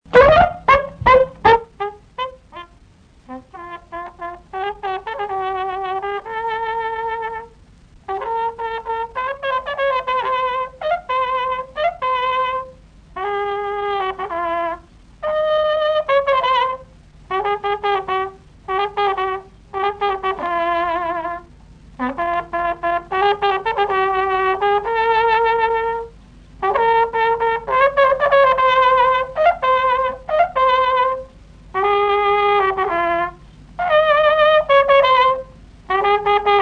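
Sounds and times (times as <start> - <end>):
Romanian old folk hora on trumpet: 0.0 - 36.6.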